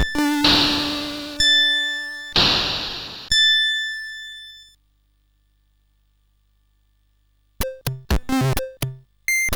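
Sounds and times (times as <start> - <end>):
SID CSG8580R5 chip music: 0.0 - 3.3, 7.6 - 9.5.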